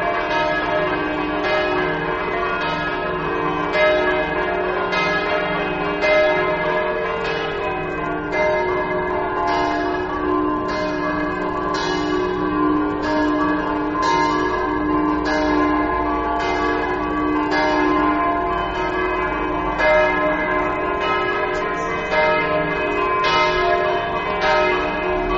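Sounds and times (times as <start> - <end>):
church bells ringing: 0.0 - 25.3.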